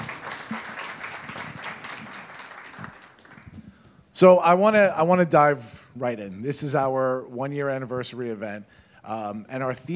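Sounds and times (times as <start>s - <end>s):
audience applause: 0.0s - 3.6s
speech: 4.2s - 9.9s.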